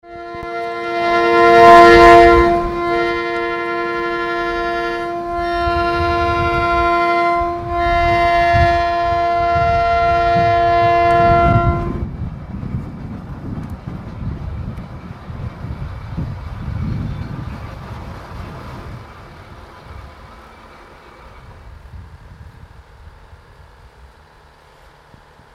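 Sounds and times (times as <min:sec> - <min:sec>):
train horn in Arriaga: 0:00.0 - 0:12.1.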